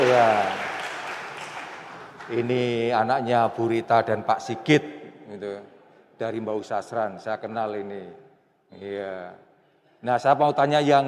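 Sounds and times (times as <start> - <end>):
group clapping: 0.0 - 2.8
speech: 0.1 - 0.6, 2.3 - 9.4, 10.0 - 11.0.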